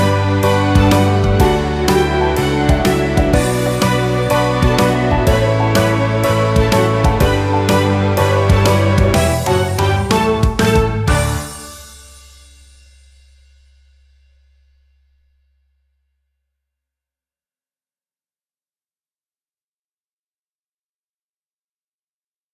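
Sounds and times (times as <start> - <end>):
band playing: 0.0 - 12.2.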